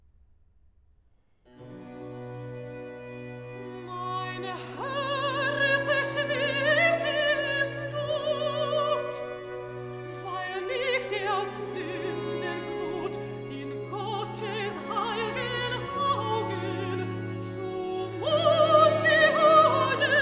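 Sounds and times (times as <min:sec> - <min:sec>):
soprano singing a cantata recitative: 0:02.4 - 0:20.2.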